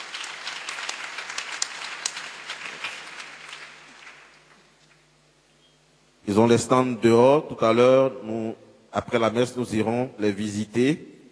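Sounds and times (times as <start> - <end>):
congregation at Mass applauding to welcome newcomers: 0.0 - 5.1
speech: 6.3 - 11.1.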